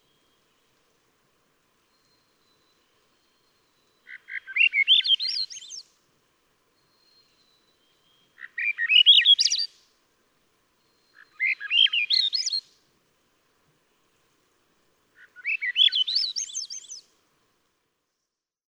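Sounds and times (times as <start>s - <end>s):
Swainson's thrush singing a rising spiralling whistled phrase: 1.9s - 5.9s, 6.8s - 9.8s, 10.8s - 12.8s, 15.3s - 17.1s.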